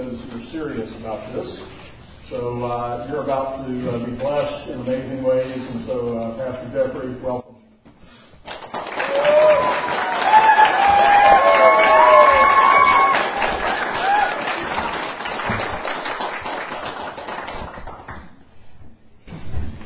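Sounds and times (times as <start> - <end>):
speech: 0.5 - 7.5
audience applause: 8.5 - 18.3.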